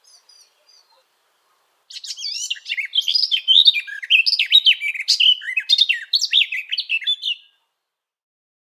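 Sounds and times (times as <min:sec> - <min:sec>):
garden warbler singing: 0:00.0 - 0:01.1, 0:01.9 - 0:07.6.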